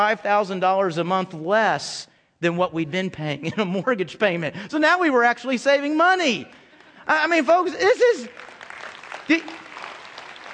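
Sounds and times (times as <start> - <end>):
speech: 0.0 - 8.5, 9.3 - 9.6
audience clapping: 6.4 - 10.5.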